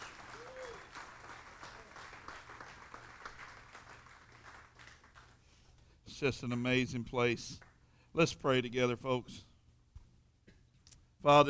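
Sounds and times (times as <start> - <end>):
church audience applause: 0.0 - 5.4
speech: 6.2 - 9.5, 11.2 - 11.4.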